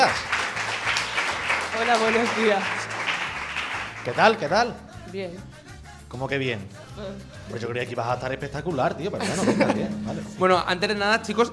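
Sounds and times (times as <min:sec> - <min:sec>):
speech: 0:00.0 - 0:00.2, 0:01.8 - 0:02.8, 0:04.0 - 0:11.5
audience applause: 0:00.0 - 0:04.4
laughter: 0:09.2 - 0:10.4.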